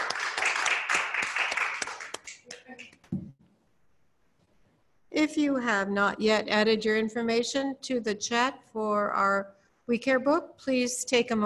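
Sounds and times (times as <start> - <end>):
audience applauding: 0.0 - 3.1
speech: 5.2 - 11.4.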